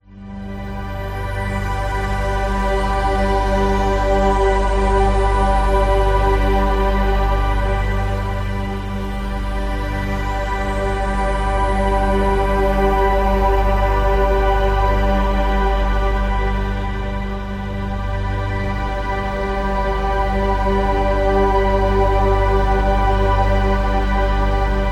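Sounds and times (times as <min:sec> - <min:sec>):
meditation music: 0:00.1 - 0:24.9.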